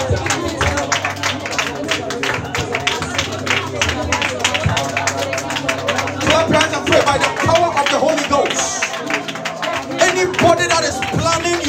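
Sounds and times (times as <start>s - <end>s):
hands clapping during prayer: 0.0s - 11.6s
low murmur of voices: 0.0s - 11.6s.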